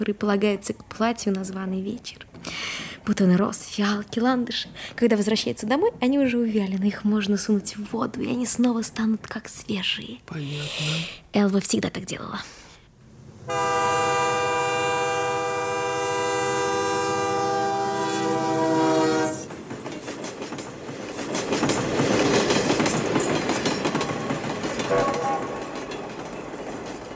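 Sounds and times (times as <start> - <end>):
speech: 0.0 - 12.6, 13.5 - 14.0
express train wheels and carriages roaring past: 13.2 - 27.1
express train horn blast: 13.4 - 19.5, 24.8 - 25.8.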